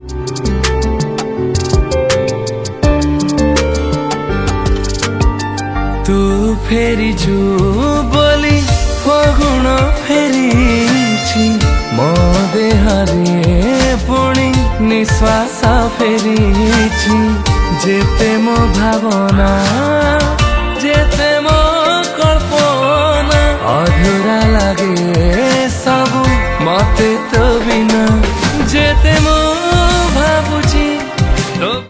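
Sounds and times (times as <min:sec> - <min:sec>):
Odia romantic song: 0:00.0 - 0:31.8.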